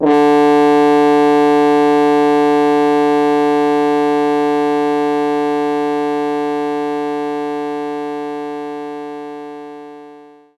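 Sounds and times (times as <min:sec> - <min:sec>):
French horn note D2: 0:00.0 - 0:07.2.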